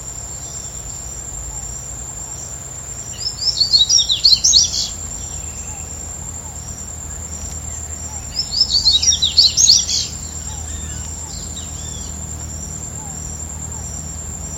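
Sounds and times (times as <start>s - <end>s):
Sporophila nigricollis: 0.0s - 14.5s.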